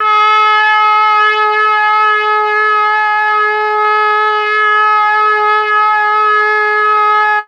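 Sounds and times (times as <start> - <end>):
brass: 0.0 - 7.4.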